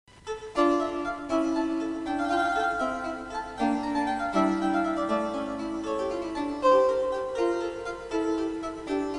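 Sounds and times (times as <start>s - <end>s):
harpsichord: 0.3s - 9.1s.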